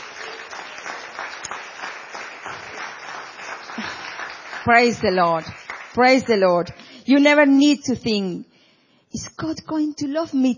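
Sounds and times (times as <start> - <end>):
audience clapping: 0.0 - 6.8
speech: 3.8 - 4.0, 4.6 - 8.5, 9.1 - 10.5.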